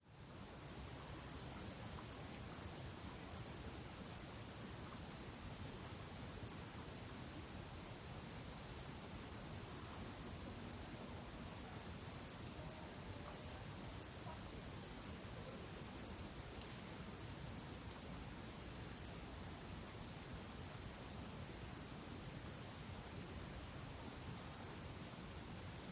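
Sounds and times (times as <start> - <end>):
crickets chirping: 0.0 - 25.8.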